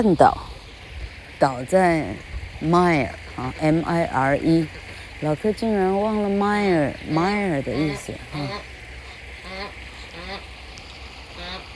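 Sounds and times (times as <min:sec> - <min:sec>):
speech: 0:00.0 - 0:00.5, 0:01.4 - 0:08.8
low rumble: 0:00.0 - 0:11.7
duck quacking: 0:06.9 - 0:10.4.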